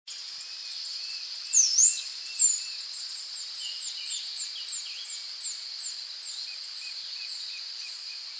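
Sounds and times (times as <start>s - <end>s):
Half-collared sparrow Arremon semitorquatus song: 0.2s - 8.2s.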